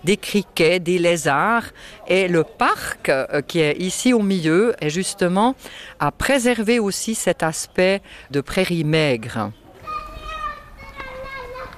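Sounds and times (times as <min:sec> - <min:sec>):
speech: 0:00.0 - 0:09.6
children playing and shouting on a park playground: 0:09.5 - 0:11.7.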